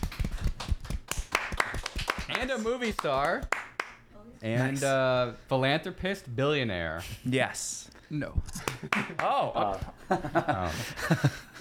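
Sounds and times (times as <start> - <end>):
small group clapping: 0.0 - 4.1, 8.6 - 9.8
speech: 2.4 - 3.6, 4.3 - 11.4
laughter: 8.6 - 11.6.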